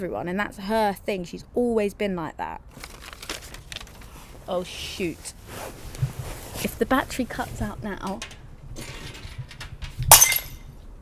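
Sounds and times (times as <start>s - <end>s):
speech: 0.0s - 3.1s, 4.5s - 5.8s, 6.6s - 9.0s
glass smashing on the floor knocked by a microphone wire: 10.1s - 10.6s.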